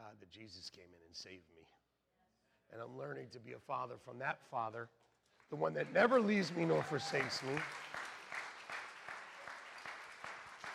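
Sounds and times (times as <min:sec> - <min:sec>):
speech: 0:00.2 - 0:01.8, 0:02.7 - 0:08.0
soft applause: 0:05.3 - 0:10.7
hand clapping: 0:05.4 - 0:10.7.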